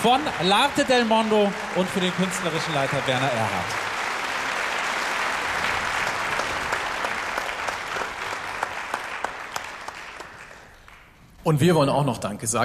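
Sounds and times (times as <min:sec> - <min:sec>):
speech: 0:00.0 - 0:03.8, 0:11.4 - 0:12.6
audience applause: 0:00.0 - 0:11.2.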